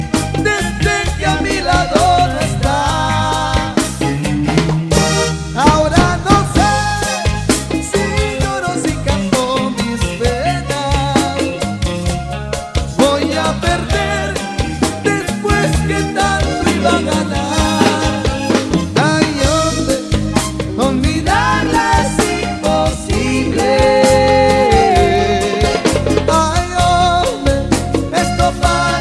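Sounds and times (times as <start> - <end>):
colombiana music: 0.0 - 29.0.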